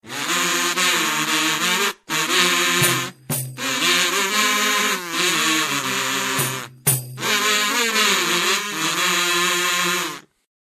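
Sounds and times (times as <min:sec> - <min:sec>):
kazoo ringtone: 0:00.0 - 0:10.3.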